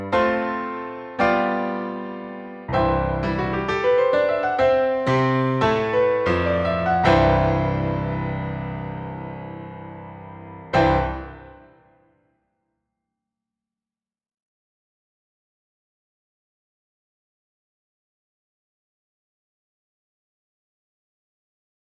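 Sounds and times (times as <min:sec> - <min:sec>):
musical accompaniment: 0:00.1 - 0:11.8.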